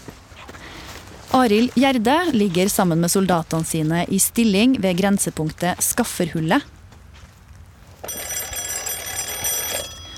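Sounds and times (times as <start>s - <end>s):
speech: 1.3s - 6.8s
field telephone ringing: 8.0s - 10.1s.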